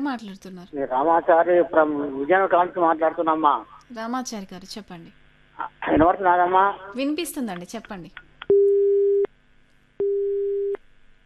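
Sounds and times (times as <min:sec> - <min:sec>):
speech: 0:00.0 - 0:08.2
telephone busy tone after a call is cut off: 0:10.0 - 0:10.8.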